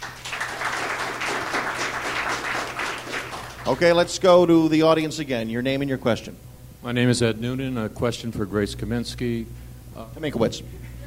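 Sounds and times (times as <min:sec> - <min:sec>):
audience applause: 0:00.0 - 0:04.1
speech: 0:03.7 - 0:10.8.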